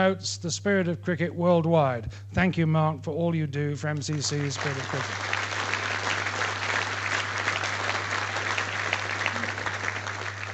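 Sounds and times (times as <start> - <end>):
speech: 0.0 - 5.4
audience applause: 4.1 - 10.5.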